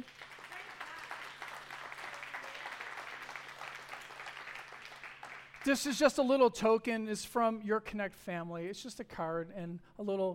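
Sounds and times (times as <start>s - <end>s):
hand clapping: 0.0s - 5.8s
speech: 5.6s - 10.3s.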